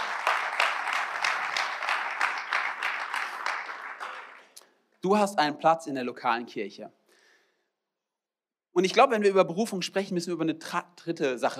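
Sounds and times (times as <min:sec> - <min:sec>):
crowd applauding: 0:00.0 - 0:04.6
speech: 0:05.0 - 0:07.0, 0:08.8 - 0:11.5.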